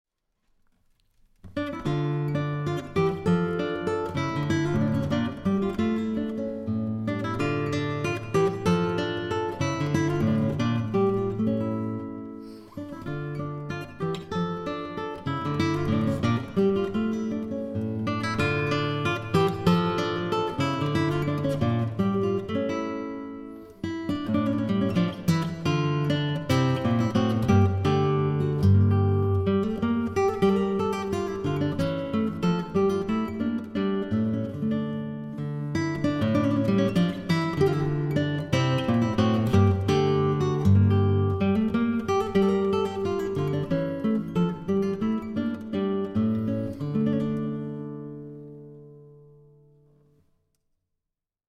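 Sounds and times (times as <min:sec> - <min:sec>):
solo guitar: 0:00.4 - 0:50.7.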